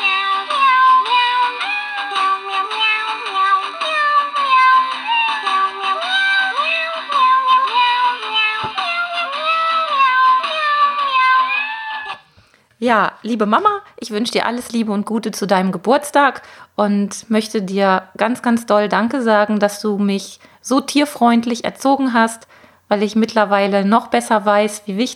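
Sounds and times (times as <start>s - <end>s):
musical birthday card playing electronic meowing tune: 0.0s - 12.2s
speech: 12.8s - 25.1s.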